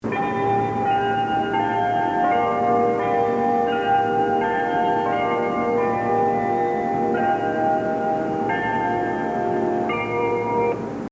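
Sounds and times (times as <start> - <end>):
melody: 0.0 - 11.0.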